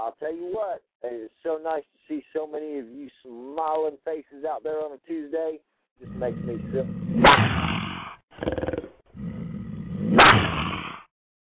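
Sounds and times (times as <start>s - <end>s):
speech: 0.1s - 9.4s
person imitating a big cat's roar: 6.0s - 11.1s.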